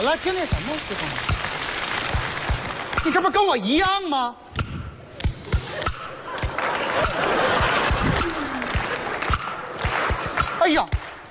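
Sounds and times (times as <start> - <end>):
speech: 0.0 - 1.5, 3.0 - 4.4, 7.0 - 7.7, 10.6 - 11.0
crowd applauding: 0.0 - 3.2, 6.3 - 10.6
crowd laughing: 5.4 - 10.4.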